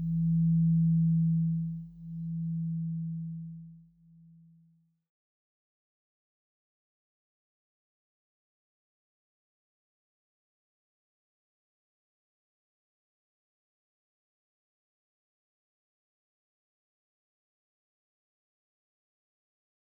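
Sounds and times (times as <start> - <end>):
singing bowls: 0.0 - 3.8.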